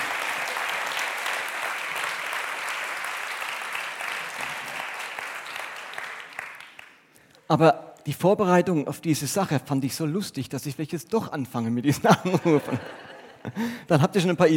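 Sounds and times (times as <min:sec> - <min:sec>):
audience applause: 0:00.0 - 0:07.0
speech: 0:07.5 - 0:14.5
laughter: 0:11.9 - 0:13.7.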